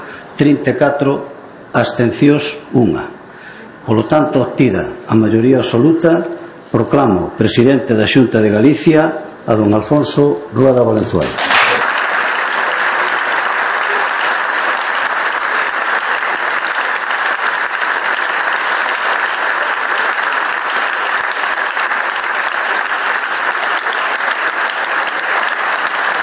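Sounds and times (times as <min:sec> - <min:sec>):
speech: 0:00.4 - 0:03.2, 0:03.9 - 0:11.5
large group applauding in parliament: 0:11.4 - 0:26.2.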